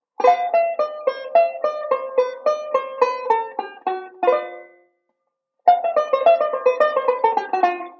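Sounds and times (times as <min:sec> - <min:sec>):
banjo playing a ii V pattern: 0:00.0 - 0:05.0, 0:05.6 - 0:07.9.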